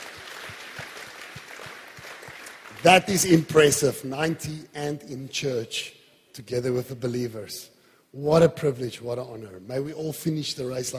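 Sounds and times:
audience applauding: 0:00.0 - 0:03.4
speech: 0:02.8 - 0:10.9.

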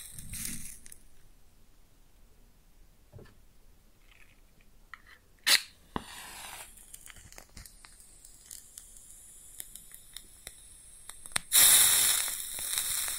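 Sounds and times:
match struck and burning: 0:00.0 - 0:01.0, 0:05.4 - 0:13.1.

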